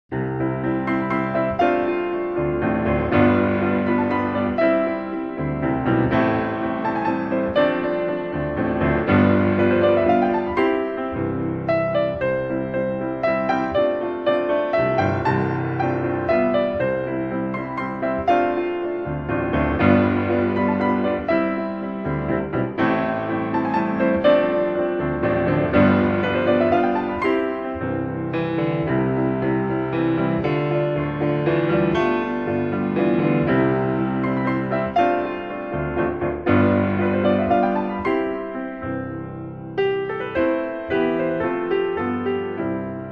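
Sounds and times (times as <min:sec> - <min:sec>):
sacred arrangements for piano: 0:00.0 - 0:43.0.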